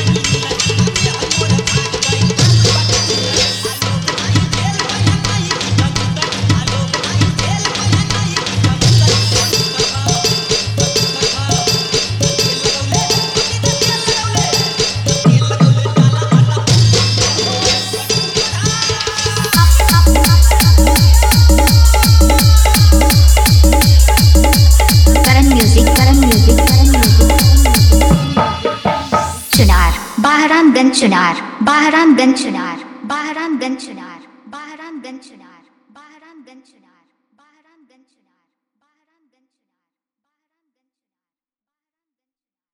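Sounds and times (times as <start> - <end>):
hard dholki drum with bass: 0.0 - 30.5
Holi remix song: 0.0 - 34.0.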